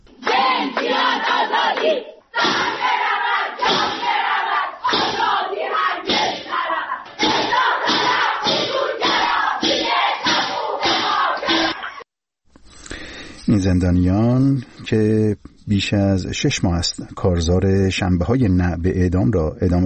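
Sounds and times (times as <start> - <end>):
prisoners chanting protest slogans in unison at a prison gathering: 0.2 - 12.0
speech: 13.6 - 19.8.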